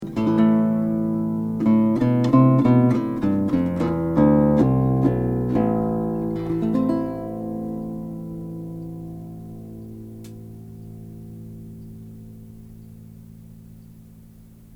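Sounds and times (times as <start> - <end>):
bass: 0.0 - 14.7.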